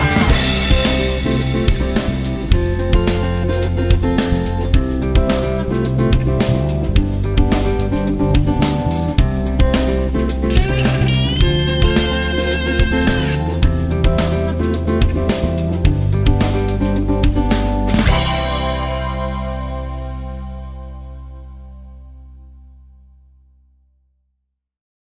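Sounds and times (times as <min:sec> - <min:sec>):
rock groove: 0:00.0 - 0:19.8.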